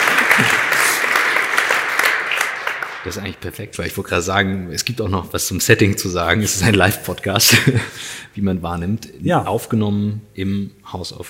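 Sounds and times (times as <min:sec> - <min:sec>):
laughter: 0:00.0 - 0:01.9, 0:07.4 - 0:08.1
people clapping: 0:00.0 - 0:03.4
speech: 0:00.4 - 0:00.6, 0:03.0 - 0:11.2.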